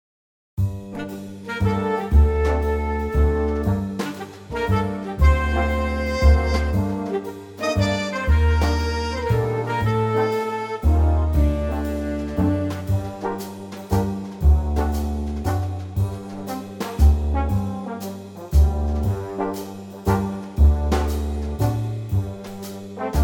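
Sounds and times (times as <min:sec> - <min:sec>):
big band music in G minor: 0:00.6 - 0:23.2.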